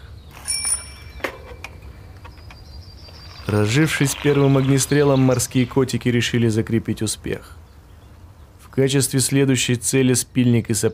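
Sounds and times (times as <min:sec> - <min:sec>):
bicycle bell ringing: 0:00.4 - 0:01.7
speech: 0:03.5 - 0:07.6, 0:08.8 - 0:10.9.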